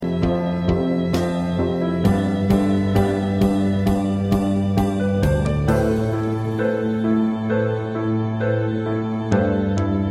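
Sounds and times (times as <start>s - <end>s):
musical accompaniment: 0.0s - 10.1s.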